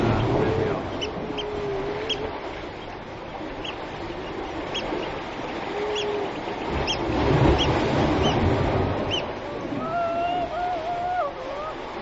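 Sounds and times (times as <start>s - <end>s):
seals calling with wavering moans: 0.0s - 2.6s, 5.5s - 7.1s, 9.1s - 12.0s
waves sloshing through a gully: 0.0s - 12.0s.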